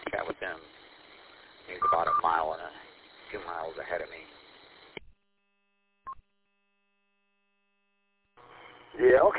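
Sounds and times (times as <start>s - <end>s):
crackly radio noise burst: 0.0s - 5.1s
two-way radio beep: 1.7s - 2.4s
speech: 2.2s - 4.4s, 9.0s - 9.3s.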